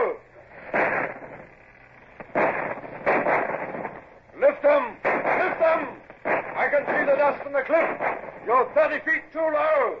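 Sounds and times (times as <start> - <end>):
steady low noise: 0.0 - 9.9
ship's starboard cannons firing: 0.6 - 1.5, 2.2 - 9.2.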